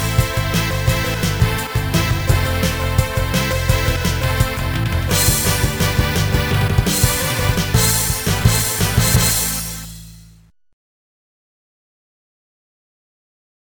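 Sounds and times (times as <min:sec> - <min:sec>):
original karaoke version of an overture: 0:00.0 - 0:10.0.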